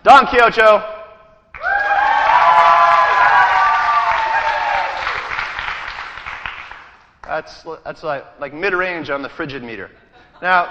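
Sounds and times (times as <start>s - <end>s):
speech: 0.0s - 0.9s, 7.4s - 10.6s
audience applause: 1.6s - 7.0s.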